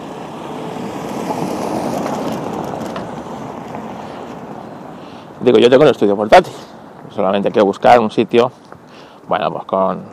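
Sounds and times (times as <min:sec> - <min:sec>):
garbage truck passing by: 0:00.0 - 0:05.2
speech: 0:05.4 - 0:08.6, 0:09.3 - 0:10.1.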